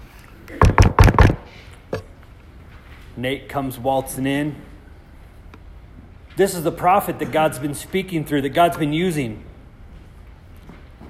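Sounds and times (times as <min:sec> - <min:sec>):
firm knocks on a door: 0:00.6 - 0:01.4
speech: 0:03.2 - 0:04.7, 0:06.4 - 0:09.5.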